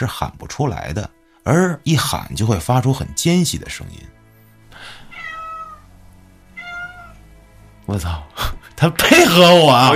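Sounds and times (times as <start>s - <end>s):
speech: 0.0s - 4.2s, 7.9s - 9.9s
cat meowing: 5.1s - 5.9s, 6.5s - 7.2s.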